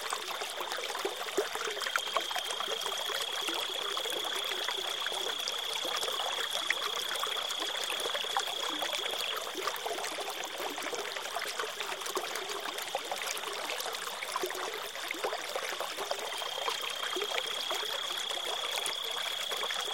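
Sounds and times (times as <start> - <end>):
wilderness river water flowing: 0.0 - 19.9
crickets chirping: 0.2 - 10.0, 14.6 - 19.9.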